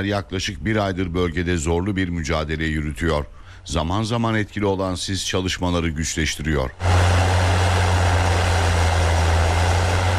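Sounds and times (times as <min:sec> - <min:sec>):
speech: 0:00.0 - 0:07.2
heavy construction machinery clearing snow at Karabet mountain pass: 0:06.8 - 0:10.1.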